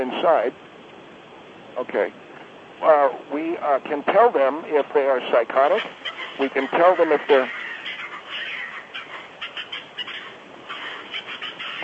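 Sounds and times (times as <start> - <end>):
speech: 0.0 - 0.7, 1.8 - 2.2, 2.8 - 7.7
squirrel calling in a tree: 4.7 - 11.8.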